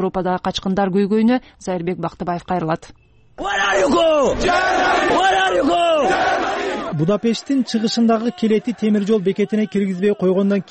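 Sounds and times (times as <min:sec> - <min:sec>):
speech: 0:00.0 - 0:10.7
crowd of migrants chanting outside Budapest's Keleti railway station: 0:03.4 - 0:10.7.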